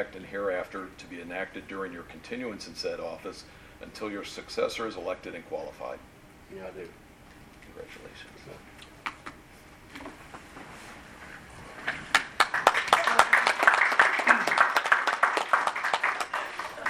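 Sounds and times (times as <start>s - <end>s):
speech: 0.0s - 7.0s, 7.8s - 8.8s
audience clapping: 11.9s - 16.8s.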